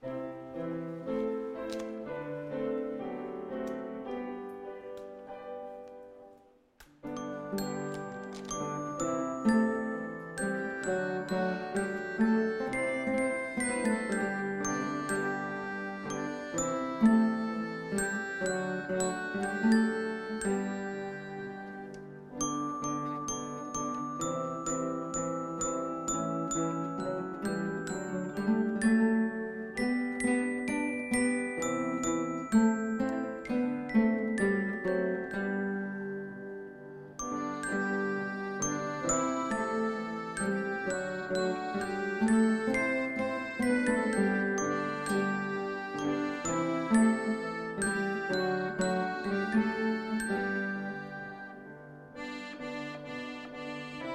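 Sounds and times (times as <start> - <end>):
instrumental music: 0.0 - 54.1.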